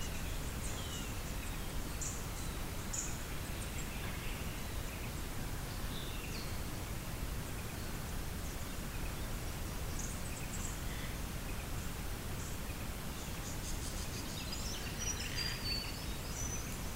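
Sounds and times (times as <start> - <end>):
early morning bird song by the Isabella River: 0.0 - 6.7, 7.4 - 16.9.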